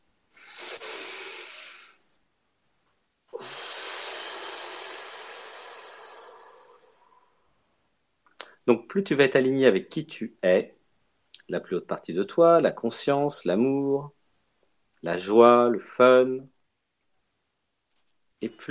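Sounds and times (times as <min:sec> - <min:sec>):
deep breath: 0:00.3 - 0:02.1, 0:03.3 - 0:07.6
speech: 0:08.7 - 0:10.8, 0:11.5 - 0:14.2, 0:15.0 - 0:16.6, 0:18.4 - 0:18.7.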